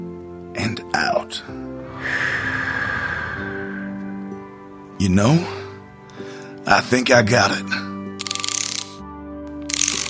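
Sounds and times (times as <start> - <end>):
speech: 0.6 - 2.5, 5.0 - 5.6, 6.7 - 7.8
ratcheting socket wrench clicking: 8.2 - 9.0, 9.7 - 10.0.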